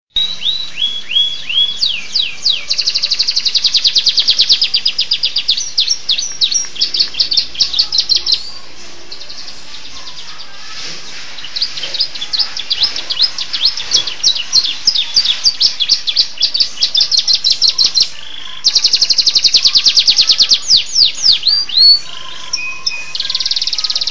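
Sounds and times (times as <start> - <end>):
Atlantic canary singing in the style of the bar-winged prinia: 0.1 - 24.0.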